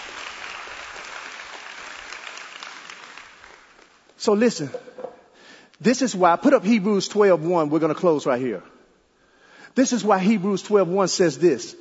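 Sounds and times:
audience hand clapping: 0.0s - 5.1s
speech: 4.2s - 4.9s, 5.8s - 8.7s, 9.8s - 11.8s.

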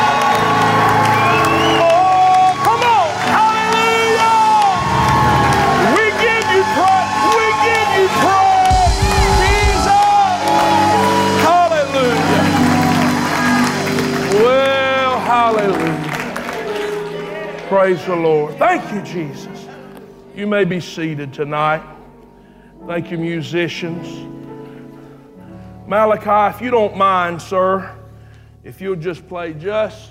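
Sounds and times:
audience shouting and whooping in praise: 0.0s - 16.0s
audience clapping: 0.0s - 18.3s
speech: 18.0s - 19.6s, 20.4s - 22.0s, 22.8s - 24.4s, 25.9s - 28.0s, 28.6s - 30.0s.

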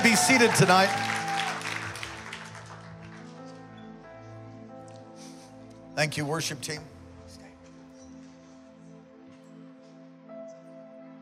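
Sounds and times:
audience clapping hands: 0.0s - 3.4s
speech: 0.2s - 1.1s, 6.0s - 7.0s.

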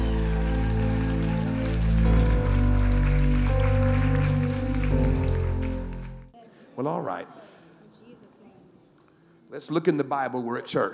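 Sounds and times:
keyboard chords: 0.0s - 6.3s
audience applause: 0.0s - 6.4s
speech: 6.9s - 7.5s, 9.5s - 10.9s.

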